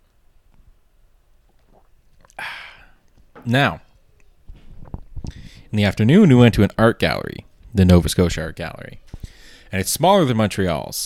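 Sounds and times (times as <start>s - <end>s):
sipping tea: 1.5s - 3.2s
speech: 3.4s - 3.8s, 5.7s - 9.1s, 9.7s - 11.0s.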